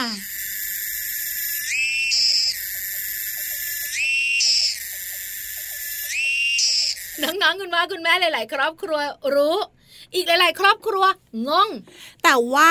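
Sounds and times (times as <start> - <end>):
insect call, continuous shrill drone: 0.0 - 7.4
speech: 7.2 - 12.7.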